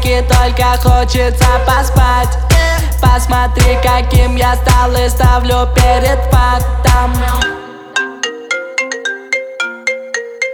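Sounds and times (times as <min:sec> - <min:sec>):
speech: 0:00.1 - 0:07.6
mobile phone ringtone: 0:07.4 - 0:10.5.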